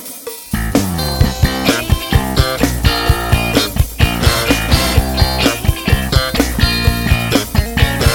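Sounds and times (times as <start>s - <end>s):
brass rock music: 0.3s - 8.1s.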